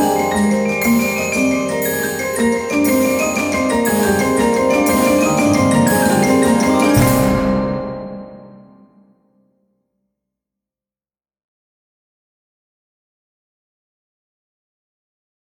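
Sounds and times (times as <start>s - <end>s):
percussion: 0.0s - 8.8s.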